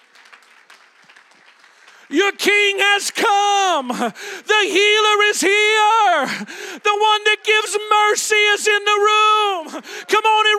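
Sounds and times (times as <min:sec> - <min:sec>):
audience clapping: 0:00.0 - 0:04.4
speech: 0:02.1 - 0:10.5.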